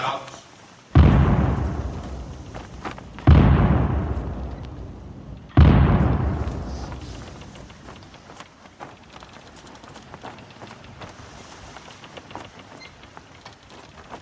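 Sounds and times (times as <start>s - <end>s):
gun salute blasts for Captain Quaker: 1.0s - 8.1s.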